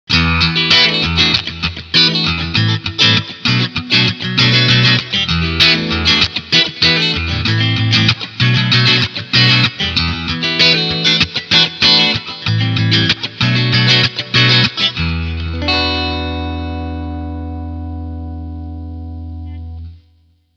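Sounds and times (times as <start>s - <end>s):
clean electric guitar strumming on both pickups: 0.1s - 20.2s.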